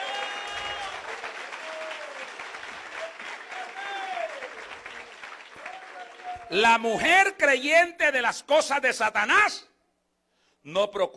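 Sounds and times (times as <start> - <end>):
audience applauding: 0.0 - 6.6
voices calling and cheering: 0.0 - 6.6
speech: 6.5 - 9.7, 10.6 - 11.1.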